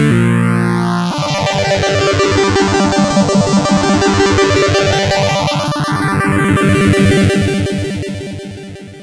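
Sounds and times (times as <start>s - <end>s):
C64 chiptune synth phrase: 0.1s - 9.0s.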